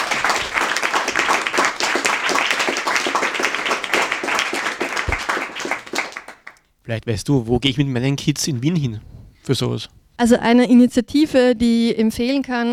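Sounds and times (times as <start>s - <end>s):
audience applauding: 0.0s - 6.6s
speech: 6.9s - 12.7s.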